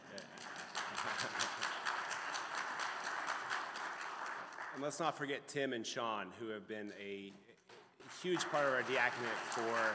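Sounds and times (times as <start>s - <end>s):
applause: 0.0s - 5.2s, 8.0s - 9.9s
speech: 4.8s - 7.5s, 8.2s - 9.9s.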